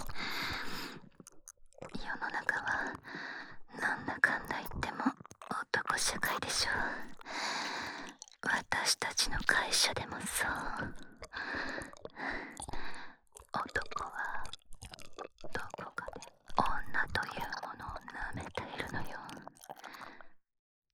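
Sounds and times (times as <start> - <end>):
ear licking: 0.0 - 2.0, 5.1 - 5.5, 7.0 - 8.4, 10.6 - 16.6
handjob, blowjob and cowgirl sex: 0.0 - 20.0.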